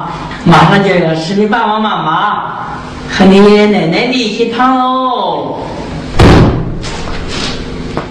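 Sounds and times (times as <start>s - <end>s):
speech: 0.5s - 5.8s
door slamming as someone enters: 6.2s - 6.8s.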